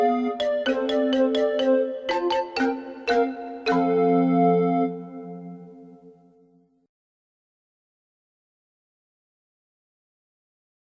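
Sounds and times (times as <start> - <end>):
music: 0.0 - 6.9.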